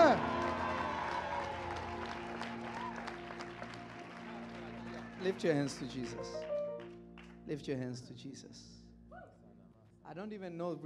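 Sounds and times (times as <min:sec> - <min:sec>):
audience clapping: 0:00.0 - 0:07.6
speech: 0:05.2 - 0:06.5, 0:07.5 - 0:08.8, 0:10.1 - 0:10.8.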